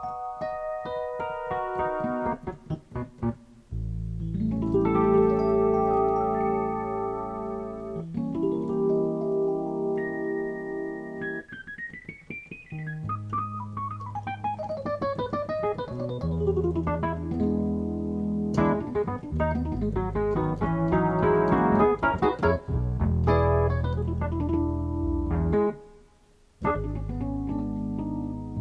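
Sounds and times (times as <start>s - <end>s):
Rhodes electric piano sketch: 0.0s - 25.9s, 26.6s - 28.5s.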